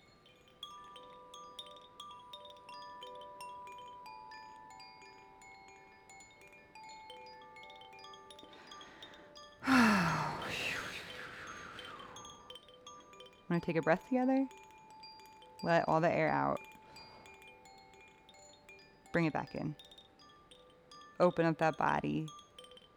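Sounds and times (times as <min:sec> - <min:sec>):
meditation chimes ringing: 0:06.1 - 0:22.9
speech: 0:13.5 - 0:14.6, 0:15.6 - 0:16.7, 0:19.1 - 0:19.9, 0:21.2 - 0:22.4.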